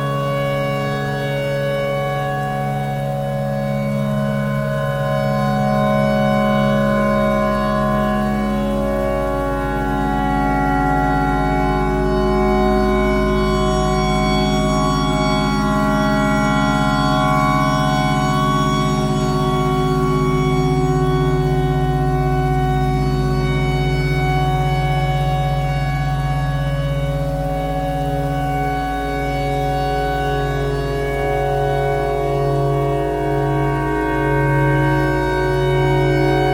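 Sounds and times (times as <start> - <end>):
clarinet imitating a tornado siren: 0.0 - 36.5.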